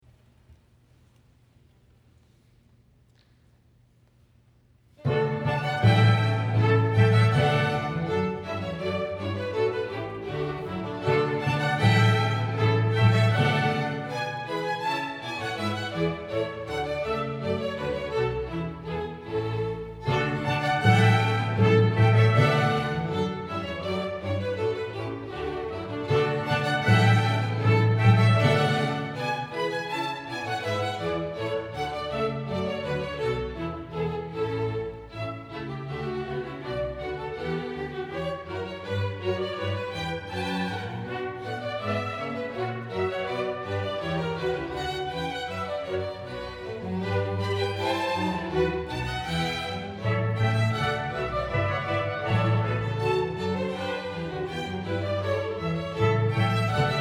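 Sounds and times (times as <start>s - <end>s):
gavotte: 5.0s - 57.0s.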